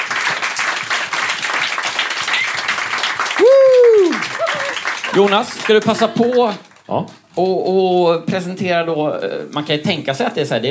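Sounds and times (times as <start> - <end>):
audience applause: 0.0 - 6.8
whooping cheer: 3.4 - 4.8
speech: 5.2 - 10.6.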